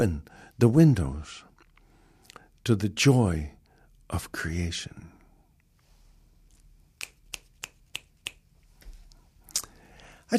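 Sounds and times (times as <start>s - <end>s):
speech: 0.0s - 1.5s, 2.6s - 5.1s
finger snapping: 7.0s - 8.5s.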